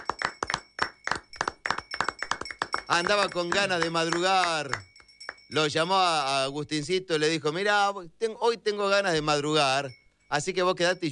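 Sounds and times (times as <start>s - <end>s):
hand clapping welcoming a studio technical operator: 0.0s - 5.6s
speech: 2.9s - 4.9s, 5.5s - 11.1s.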